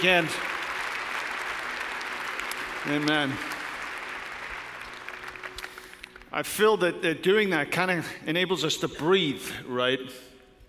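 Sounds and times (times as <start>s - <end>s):
speech: 0.0s - 0.5s, 2.8s - 3.5s, 6.4s - 10.3s
audience clapping: 0.0s - 6.8s.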